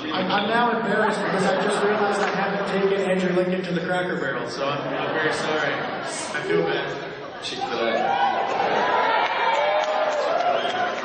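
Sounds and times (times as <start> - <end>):
laughter: 0.1 - 3.4, 4.6 - 9.7
speech: 0.2 - 8.9
audience shouting out suggestions: 7.6 - 11.0.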